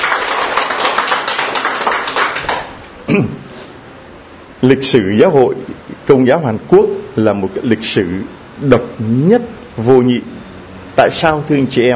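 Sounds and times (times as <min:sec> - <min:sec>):
Catholic church congregation applauding: 0:00.0 - 0:02.9
speech: 0:03.1 - 0:03.4, 0:04.6 - 0:10.3, 0:11.0 - 0:11.9.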